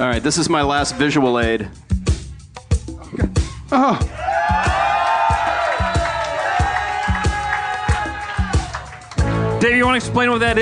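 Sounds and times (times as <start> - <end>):
speech: 0.0 - 2.0, 3.1 - 4.2, 9.6 - 10.6
live audience cheering with loud whoops: 4.1 - 9.2
live audience clapping: 4.7 - 9.5.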